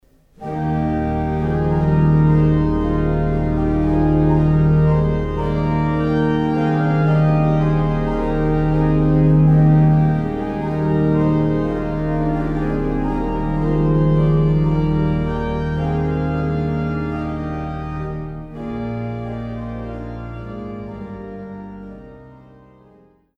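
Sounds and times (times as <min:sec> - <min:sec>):
organ: 0:00.4 - 0:23.2.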